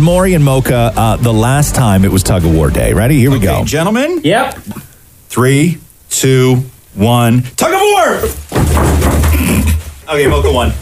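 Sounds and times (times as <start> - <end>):
speech: 0.0 - 10.8
rolling thud of a chest hitting the floor: 8.3 - 10.7.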